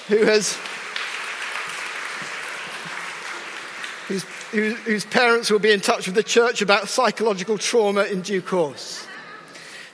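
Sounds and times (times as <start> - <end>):
audience applause in a church gathering: 0.0 - 6.1
speech: 0.1 - 0.9, 4.1 - 9.1.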